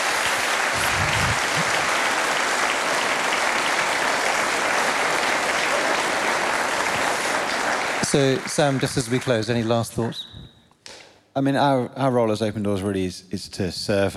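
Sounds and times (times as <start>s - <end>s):
audience applause: 0.0s - 10.0s
speech: 8.1s - 10.4s, 11.4s - 14.1s.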